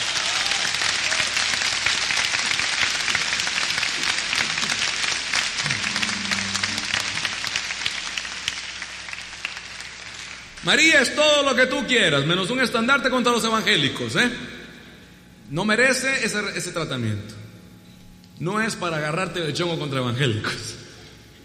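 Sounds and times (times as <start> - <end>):
audience applause: 0.0 - 10.6
speech: 10.7 - 14.5, 15.5 - 17.4, 18.4 - 20.8.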